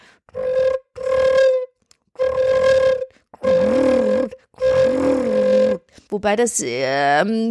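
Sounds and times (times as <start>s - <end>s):
flute played with flutter-tongue technique: 0.3s - 5.9s
speech: 6.1s - 7.4s.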